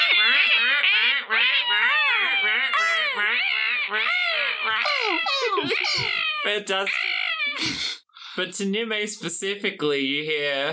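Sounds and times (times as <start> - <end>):
voice imitating a noisy seagull flock: 0.0 - 7.8
speech: 3.9 - 10.7.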